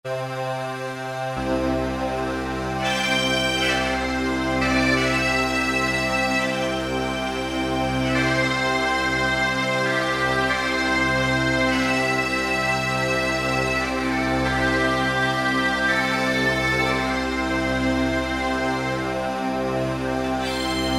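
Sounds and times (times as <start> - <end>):
bagpipes: 0.2 - 20.9.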